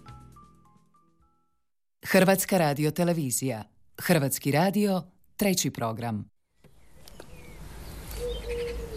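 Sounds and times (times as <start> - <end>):
speech: 2.1 - 6.3
small birds singing in pine trees in front of a family home's terrace: 6.6 - 8.9.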